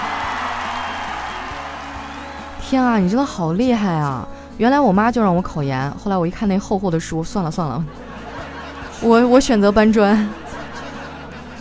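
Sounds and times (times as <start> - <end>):
enthusiastic applause from a large crowd: 0.0 - 2.6, 10.2 - 11.5
speech: 2.6 - 8.0, 9.0 - 10.4
laughter: 7.8 - 11.5.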